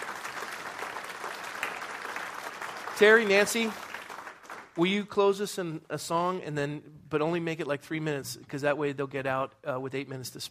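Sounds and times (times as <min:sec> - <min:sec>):
audience applause: 0:00.0 - 0:04.8
speech: 0:03.0 - 0:03.8, 0:04.8 - 0:10.4.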